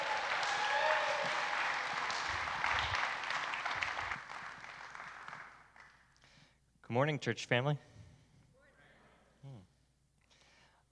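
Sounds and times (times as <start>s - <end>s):
crowd applause: 0.0s - 6.0s
speech: 6.9s - 7.9s.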